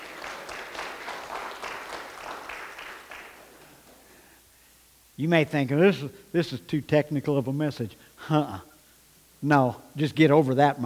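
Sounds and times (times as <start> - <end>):
audience applauding: 0.0 - 4.1
speech: 5.2 - 8.7, 9.4 - 10.8.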